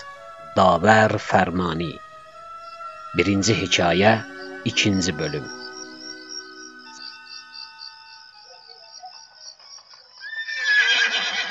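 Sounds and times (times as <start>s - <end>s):
speech: 0.6s - 2.0s, 3.1s - 5.6s
horse neighing in a long wavering high whinny: 10.2s - 11.4s.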